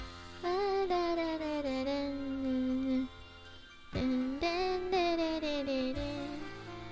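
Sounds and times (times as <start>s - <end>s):
person singing: 0.4s - 3.1s, 4.0s - 6.8s.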